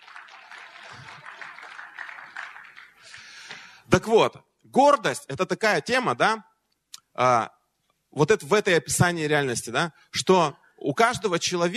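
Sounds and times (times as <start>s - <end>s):
applause: 0.0s - 3.9s
speech: 3.9s - 6.5s, 7.2s - 11.7s.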